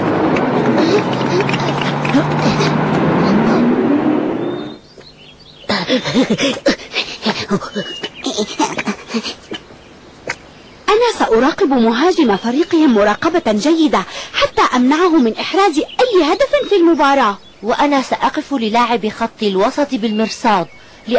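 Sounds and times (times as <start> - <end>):
car arriving: 0.0 - 5.6
laughter: 0.2 - 3.7, 5.7 - 9.6
speech: 6.0 - 9.5, 10.9 - 21.1.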